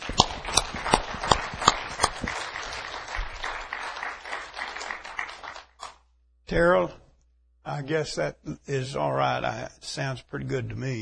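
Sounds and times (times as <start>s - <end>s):
audience applause: 0.0s - 5.8s
speech: 6.5s - 7.0s, 7.7s - 11.0s.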